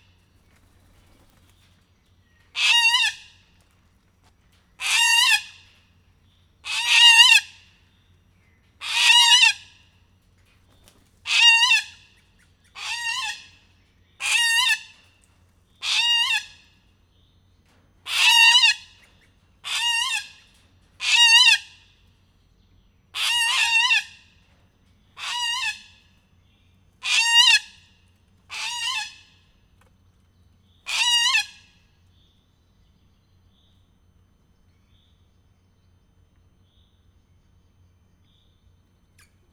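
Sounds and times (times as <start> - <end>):
emboldened bare-eyed cockatoo in Miskolc zoo: 2.5 - 3.4, 4.8 - 5.8, 6.6 - 7.7, 8.8 - 9.8, 11.2 - 15.1, 15.8 - 16.8, 18.0 - 21.9, 23.2 - 24.4, 25.2 - 26.2, 27.0 - 29.6, 30.8 - 31.9.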